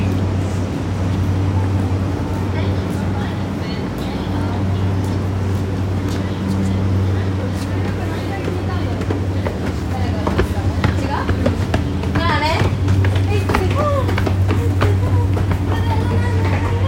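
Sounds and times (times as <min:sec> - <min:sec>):
train on the JR Yokosuka Line at Zushi: 0:00.0 - 0:16.8.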